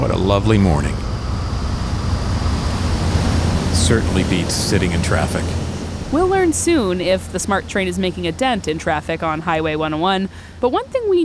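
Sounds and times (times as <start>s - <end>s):
speech: 0.0s - 1.0s, 3.9s - 11.2s
water and waves around a ferry about to depart: 0.0s - 7.6s
low rumbling undertone: 0.0s - 10.6s.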